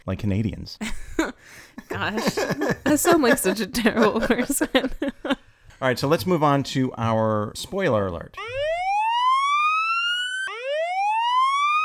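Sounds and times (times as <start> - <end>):
speech: 0.0 - 8.7
laughter: 0.8 - 5.4
alarm: 8.4 - 11.8.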